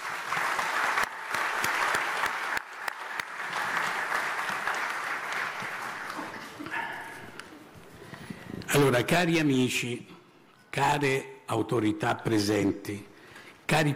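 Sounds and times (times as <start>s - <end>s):
audience applause: 0.0s - 7.2s
speech: 8.9s - 10.1s, 10.8s - 13.1s, 13.7s - 13.9s.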